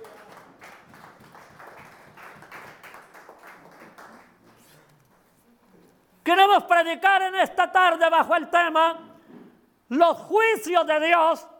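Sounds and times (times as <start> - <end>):
audience applause: 0.0 - 4.5
speech: 6.3 - 9.1, 9.9 - 11.5.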